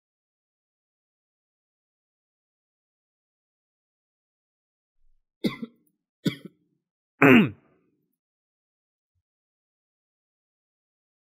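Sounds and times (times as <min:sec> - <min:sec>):
voiced throat clearing: 0:05.4 - 0:06.5, 0:07.2 - 0:07.6
short sharp coughs: 0:05.4 - 0:06.6, 0:07.2 - 0:07.6.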